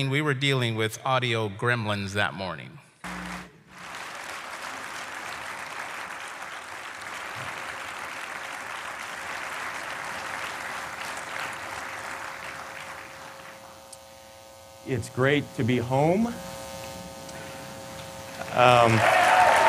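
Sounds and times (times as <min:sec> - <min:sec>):
speech: 0:00.0 - 0:03.2, 0:14.9 - 0:16.5, 0:18.5 - 0:19.2
thunderous applause from audience: 0:03.1 - 0:13.8, 0:18.3 - 0:19.6.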